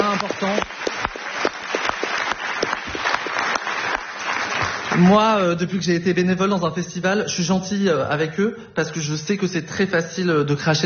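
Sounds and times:
audience applause for festival volunteers: 0.0 - 5.3
speech: 5.0 - 10.8.

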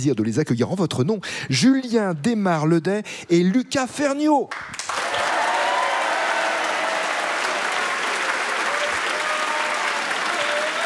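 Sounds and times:
speech: 0.0 - 5.0
large studio audience at a radio show applauding: 4.7 - 10.8.

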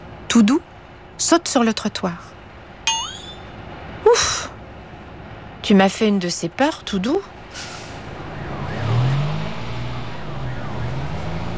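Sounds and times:
street traffic: 0.0 - 11.5
speech: 0.4 - 2.4, 4.1 - 4.5, 5.6 - 7.7
engines revving: 8.0 - 11.5.

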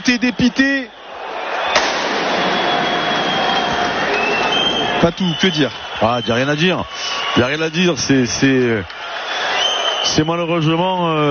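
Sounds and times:
speech: 0.0 - 1.0, 5.0 - 9.1, 10.1 - 11.2
firecrackers exploding in a stadium: 1.7 - 4.6.

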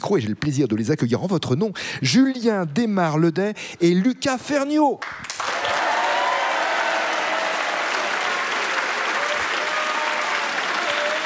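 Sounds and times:
speech: 0.0 - 5.5
studio audience applauding: 5.0 - 11.2
voices cheering above the clapping: 5.4 - 11.2.

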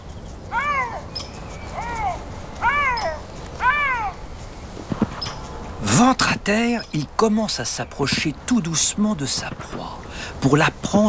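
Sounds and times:
lynx making small meowing calls: 0.5 - 6.1
speech: 6.0 - 11.0.

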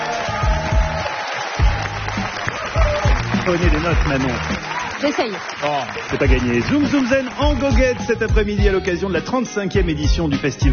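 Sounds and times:
auditorium audience applause: 0.0 - 8.4
speech: 3.5 - 10.7.

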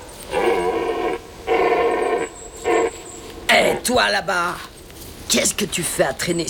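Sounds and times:
stag bellowing: 0.0 - 4.1
speech: 3.6 - 4.7, 5.3 - 6.4.

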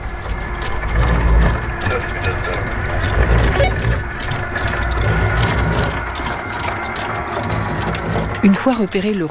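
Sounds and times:
anchor chain being let down from boat: 0.0 - 9.3
low engine rumble: 0.0 - 9.3
speech: 8.4 - 9.3.

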